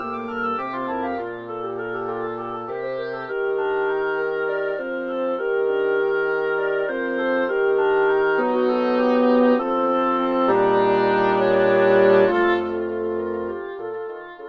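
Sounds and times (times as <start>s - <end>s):
woodwind quintet playing: 0.0s - 14.4s.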